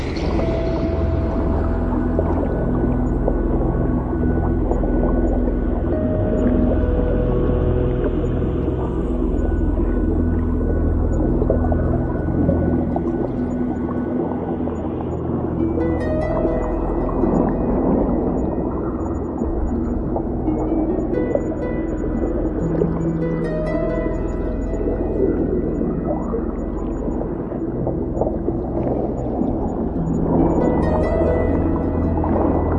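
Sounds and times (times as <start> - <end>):
underwater lifeforms: 0.0 - 32.7.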